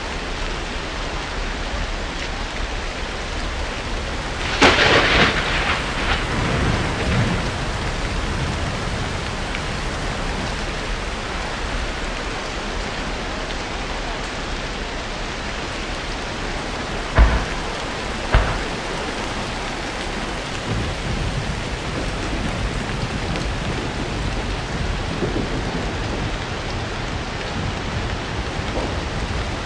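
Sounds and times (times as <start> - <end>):
rain on a farm: 0.0 - 29.6.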